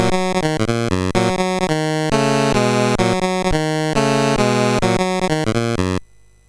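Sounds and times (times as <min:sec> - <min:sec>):
SID MOS6581R3 chip sound: 0:00.0 - 0:06.0.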